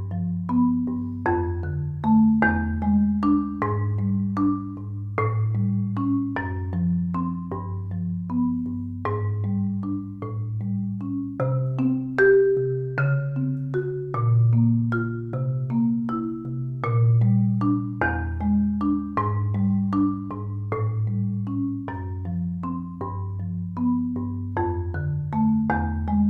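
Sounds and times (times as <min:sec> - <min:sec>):
mahamarimba: 0:00.0 - 0:26.2.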